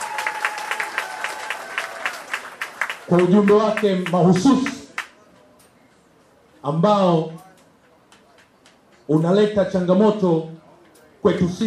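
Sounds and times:
audience applause for a politician at a party branch opening meeting: 0.0 - 5.2
speech: 3.1 - 4.8, 6.6 - 7.4, 9.1 - 10.6, 11.2 - 11.6.

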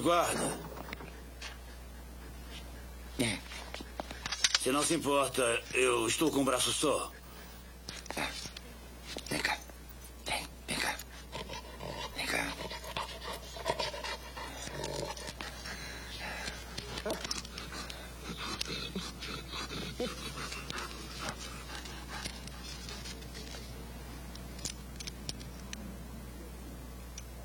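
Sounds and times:
speech: 0.0 - 0.7, 3.2 - 3.9, 4.6 - 7.2, 8.1 - 8.4
low steady hum: 0.0 - 27.4
dog panting: 0.1 - 4.2, 5.1 - 8.6, 10.7 - 23.6
faint dog whimpers: 16.9 - 20.8.

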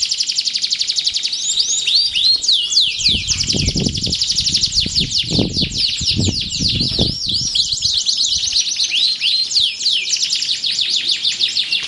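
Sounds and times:
canary singing: 0.0 - 11.8
low thumps: 3.0 - 8.0.

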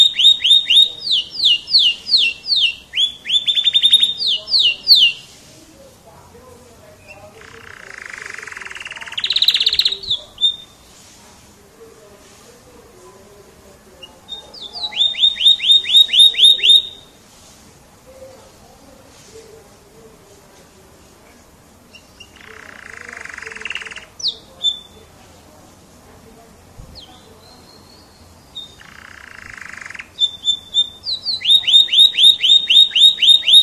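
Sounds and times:
champion singing canary: 0.0 - 11.0, 12.8 - 17.2, 21.8 - 25.5, 26.8 - 33.6.

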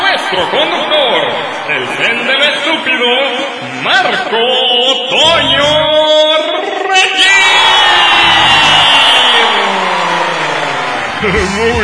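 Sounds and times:
audience applause and cheering: 0.0 - 4.1, 6.8 - 11.8
laughter: 0.0 - 7.4
speech: 0.3 - 6.2, 11.2 - 11.8.

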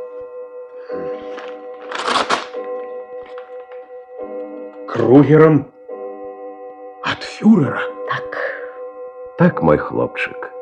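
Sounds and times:
speech: 0.9 - 1.3, 4.9 - 5.7, 7.4 - 7.9, 9.4 - 10.5
paper package being torn open: 1.2 - 2.6.

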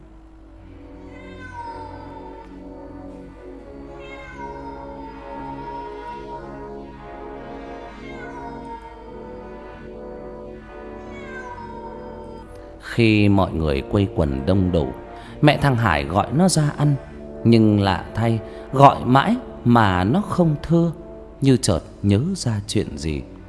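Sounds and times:
cat crying out wailingly upstairs: 0.7 - 12.8
speech: 13.0 - 23.3.

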